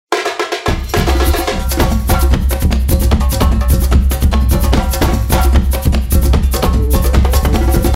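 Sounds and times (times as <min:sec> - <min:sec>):
capoeira music: 0:00.1 - 0:07.9.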